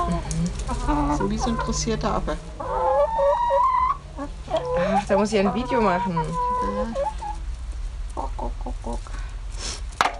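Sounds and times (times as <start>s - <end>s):
chicken clucking: 0.0s - 9.2s
speech: 0.8s - 2.9s, 5.1s - 7.1s.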